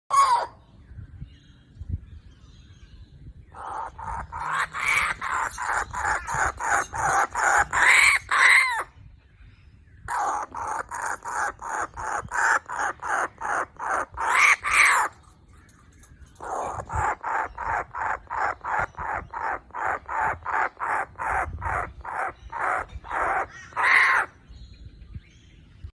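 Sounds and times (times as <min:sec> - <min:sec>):
Kookaburra chick calls: 0:00.1 - 0:00.5, 0:03.6 - 0:08.9, 0:10.1 - 0:15.2, 0:16.4 - 0:24.3.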